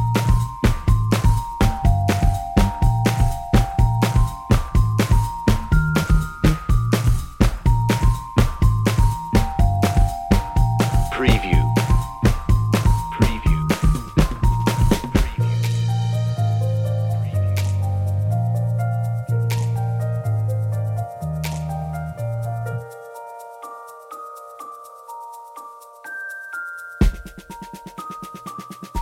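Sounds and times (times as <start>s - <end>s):
drums: 0.0s - 18.1s, 27.0s - 29.0s
bells: 0.0s - 18.7s, 21.8s - 29.0s
bass: 0.0s - 22.8s
piano: 0.0s - 29.0s.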